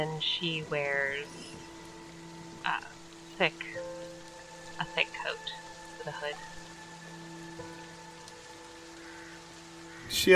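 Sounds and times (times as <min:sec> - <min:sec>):
speech: 0:00.0 - 0:01.7, 0:02.6 - 0:03.9, 0:04.8 - 0:06.6, 0:10.1 - 0:10.3
soft steady rain: 0:00.0 - 0:10.3.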